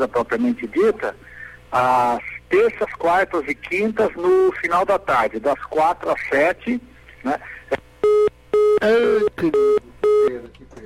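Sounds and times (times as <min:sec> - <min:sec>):
speech: 0:00.0 - 0:07.6, 0:08.8 - 0:10.8
telephone busy signal on a failed call: 0:08.0 - 0:10.4.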